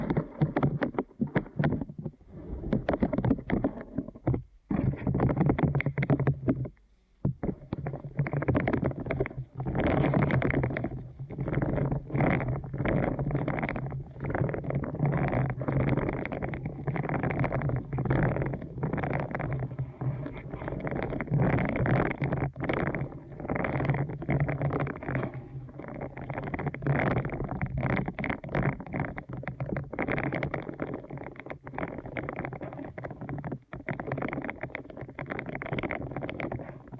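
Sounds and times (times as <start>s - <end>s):
deep ear canal massage rubbing: 0.0s - 6.7s, 7.3s - 36.9s
quick scratchy crackles: 0.0s - 36.9s.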